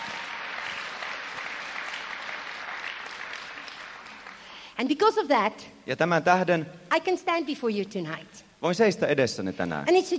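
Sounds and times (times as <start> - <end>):
crowd applauding: 0.0 - 4.7
speech: 4.8 - 10.1.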